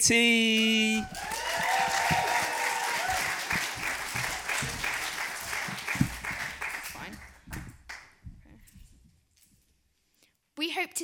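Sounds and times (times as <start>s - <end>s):
speech: 0.0s - 2.1s
audience applause at a school students' poetry festival showcase: 0.6s - 8.1s.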